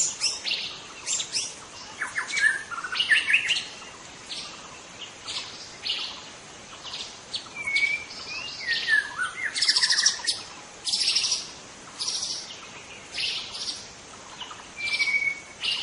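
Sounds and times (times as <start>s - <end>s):
white-rumped shama singing: 0.0s - 15.8s.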